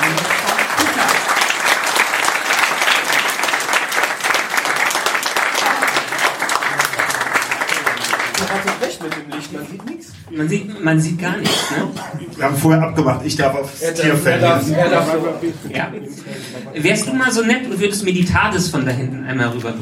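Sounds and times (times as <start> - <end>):
large audience applauding loudly: 0.0 - 10.0
speech: 10.4 - 19.8.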